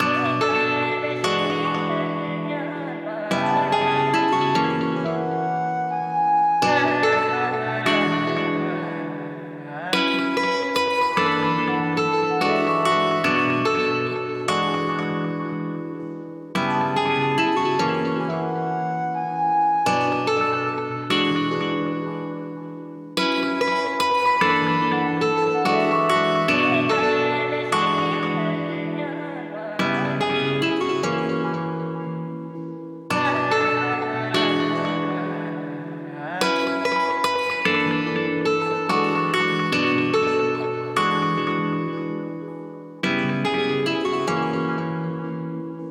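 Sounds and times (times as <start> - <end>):
music in B minor at 145 BPM: 0.0 - 45.8.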